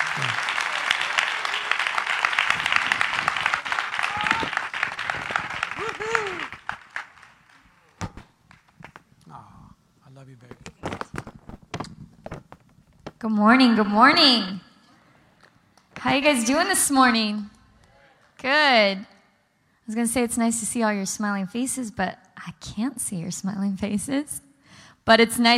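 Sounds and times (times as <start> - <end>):
church audience applause welcoming a pastor: 0.0 - 8.0
speech: 0.2 - 0.5, 13.2 - 14.6, 16.1 - 17.5, 18.4 - 19.1, 19.9 - 24.4, 25.0 - 25.5
scattered small noises: 10.4 - 13.2.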